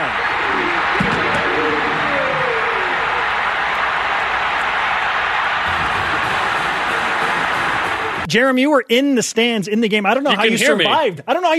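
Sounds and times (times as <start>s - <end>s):
stadium crowd screaming and roaring after a touchdown: 0.0s - 8.3s
speech: 8.3s - 11.5s.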